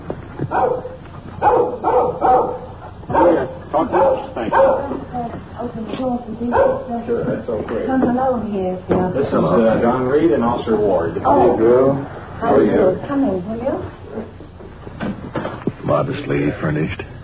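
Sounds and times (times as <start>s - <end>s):
speech: 0.5s - 2.6s, 3.8s - 14.0s, 15.9s - 17.1s
small dog barking: 0.5s - 5.1s, 6.4s - 7.0s.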